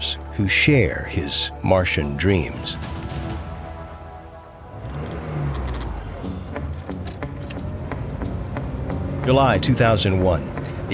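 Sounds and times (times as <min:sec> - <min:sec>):
speech: 0:00.4 - 0:02.9, 0:09.3 - 0:10.9
convertible car engine humming on the outskirts of Logan, Utah: 0:03.4 - 0:10.9.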